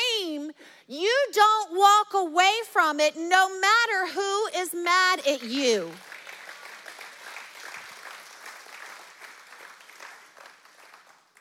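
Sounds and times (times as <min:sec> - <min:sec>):
speech: 0:00.9 - 0:06.1
audience clapping: 0:05.8 - 0:11.4.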